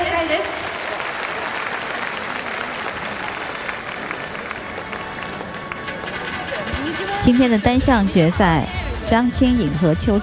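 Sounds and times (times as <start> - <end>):
arena audience applause: 0.1 - 7.2
speech: 7.3 - 10.2.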